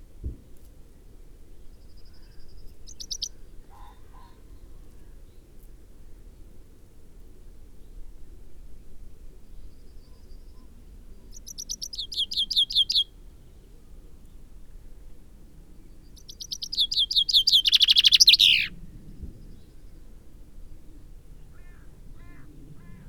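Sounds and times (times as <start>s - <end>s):
common chaffinch singing: 2.9s - 3.4s, 11.3s - 13.1s, 16.0s - 18.7s.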